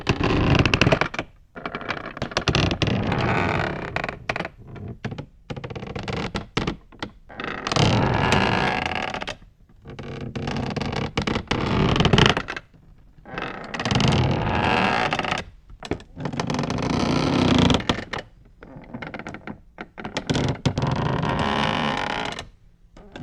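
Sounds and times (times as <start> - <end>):
large wood creaking: 0.0 - 22.6.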